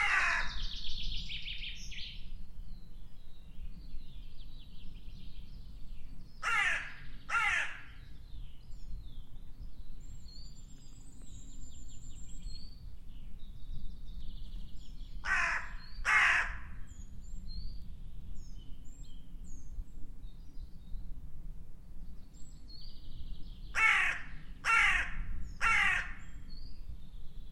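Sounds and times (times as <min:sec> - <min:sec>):
bird harsh rasping calls: 0:00.0 - 0:00.6, 0:06.4 - 0:08.0, 0:15.2 - 0:16.7, 0:23.8 - 0:26.3.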